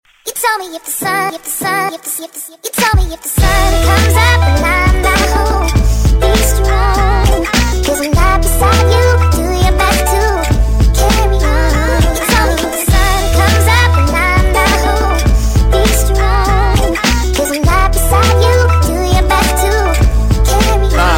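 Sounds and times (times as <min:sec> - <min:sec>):
hip hop music: 0:00.3 - 0:21.1.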